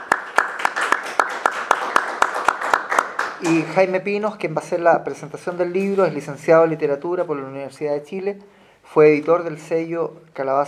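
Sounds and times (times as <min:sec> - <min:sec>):
audience applause: 0:00.0 - 0:04.0
sharp steady claps: 0:00.0 - 0:04.0
speech: 0:03.4 - 0:10.6.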